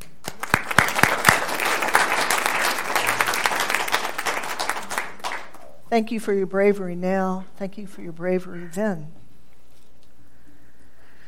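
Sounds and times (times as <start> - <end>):
room full of people applauding: 0.0 - 5.7
speech: 5.9 - 9.2.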